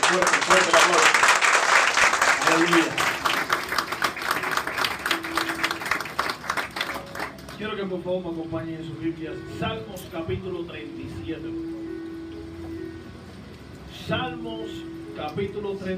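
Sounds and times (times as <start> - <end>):
audience applause: 0.0 - 7.6
speech: 0.1 - 1.2, 2.5 - 3.1, 7.8 - 11.8, 14.1 - 15.9.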